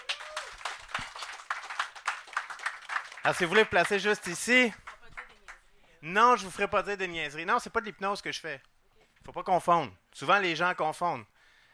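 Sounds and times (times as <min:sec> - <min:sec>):
scattered audience hand claps at a French-language stage show: 0:00.0 - 0:05.6
speech: 0:03.2 - 0:04.8, 0:06.0 - 0:08.7, 0:09.3 - 0:11.3.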